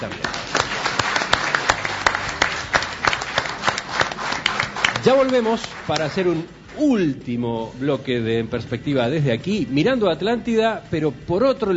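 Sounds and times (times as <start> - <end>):
speech: 0.0 - 0.4, 5.0 - 11.7
audience applause: 0.0 - 6.8.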